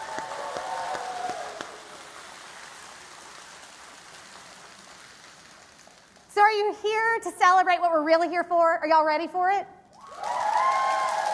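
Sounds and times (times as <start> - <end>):
audience applause: 0.0 - 6.2, 10.0 - 11.3
speech: 6.4 - 9.8.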